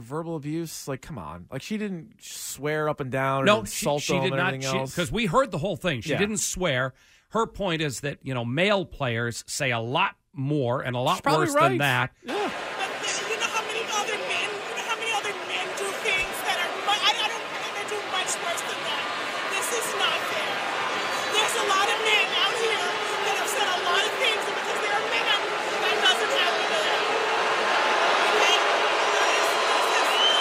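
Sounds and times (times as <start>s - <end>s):
speech: 0.0s - 13.2s
sports crowd reacting: 3.4s - 5.3s, 11.1s - 30.3s.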